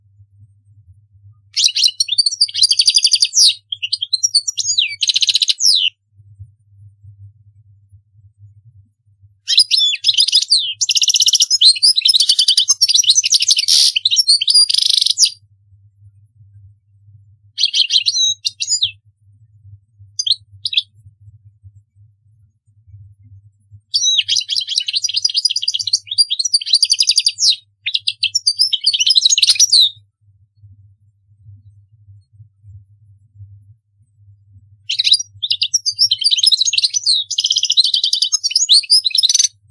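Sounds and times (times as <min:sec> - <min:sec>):
European goldfinch song: 0:01.5 - 0:06.0, 0:09.5 - 0:15.4, 0:17.5 - 0:19.0, 0:20.1 - 0:21.0, 0:23.9 - 0:30.0, 0:34.8 - 0:39.6.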